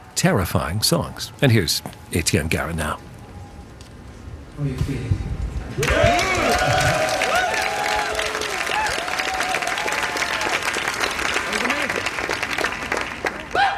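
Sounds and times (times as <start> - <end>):
speech: 0.2 - 3.1, 4.6 - 6.9
audience whooping and shouting: 5.8 - 10.7, 13.5 - 13.7
audience clapping at a classical song recital: 5.8 - 13.7.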